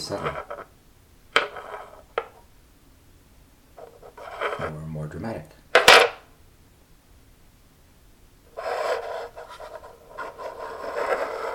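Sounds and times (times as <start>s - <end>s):
speech: 0.1s - 0.5s, 5.1s - 5.6s
glass rubbing and knocking against a bamboo table: 1.4s - 2.4s, 3.8s - 4.7s, 8.6s - 11.5s.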